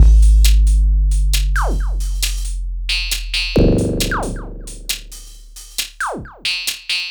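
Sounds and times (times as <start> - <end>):
strange drums: 0.0 - 7.0.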